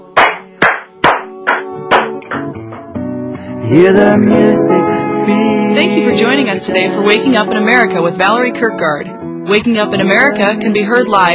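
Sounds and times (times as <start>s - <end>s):
clapping: 0.2s - 3.0s
speech: 3.7s - 11.3s.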